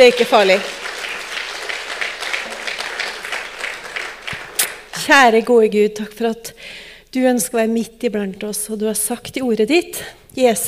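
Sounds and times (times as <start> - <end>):
speech: 0.0 - 0.9, 5.0 - 10.6
audience applause: 0.0 - 4.9.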